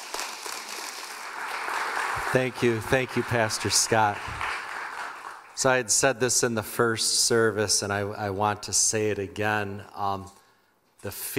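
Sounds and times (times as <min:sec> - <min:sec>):
audience applauding to welcome a speaker onto a church stage: 0:00.0 - 0:05.6
speech: 0:02.3 - 0:04.4, 0:05.6 - 0:10.4, 0:11.0 - 0:11.3.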